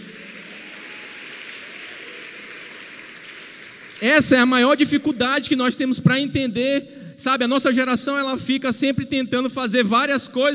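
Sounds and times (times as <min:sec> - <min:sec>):
audience applauding: 0:00.0 - 0:05.1
speech: 0:04.0 - 0:10.5.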